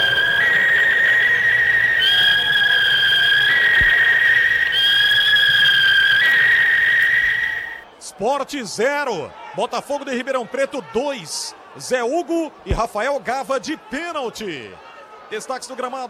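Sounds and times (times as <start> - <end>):
referee's whistle ending the first half: 0.0 - 8.0
speech: 8.2 - 16.0.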